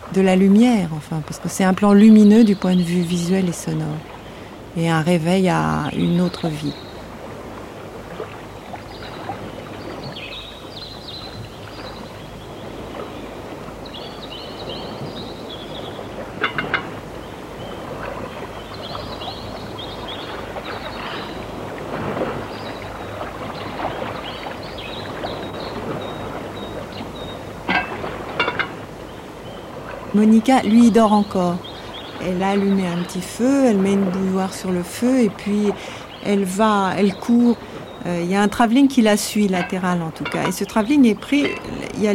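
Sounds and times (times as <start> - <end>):
water: 0.0 - 42.1
speech: 0.2 - 4.2, 4.8 - 6.9, 30.2 - 42.1.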